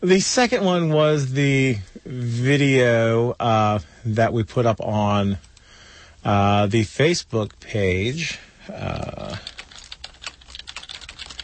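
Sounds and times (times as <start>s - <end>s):
speech: 0.0s - 5.5s, 6.2s - 9.5s
typing on a computer keyboard: 9.2s - 11.4s.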